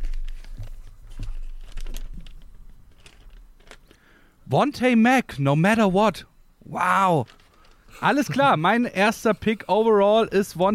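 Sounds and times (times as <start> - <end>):
slip of paper crinkling as it is unfolded: 0.0 - 4.0, 7.2 - 8.5
speech: 4.5 - 7.4, 8.0 - 10.7.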